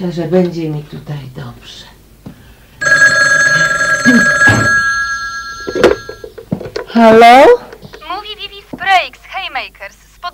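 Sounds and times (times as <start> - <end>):
speech: 0.0 - 1.9, 4.1 - 4.4, 7.0 - 7.6, 8.8 - 10.3
old-style telephone bell ringing: 2.8 - 6.3.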